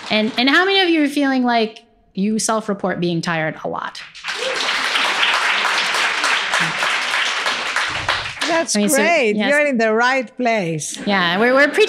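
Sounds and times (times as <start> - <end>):
audience clapping: 0.0 - 1.0, 4.0 - 9.2
speech: 0.1 - 4.1, 6.6 - 6.8, 8.5 - 11.8.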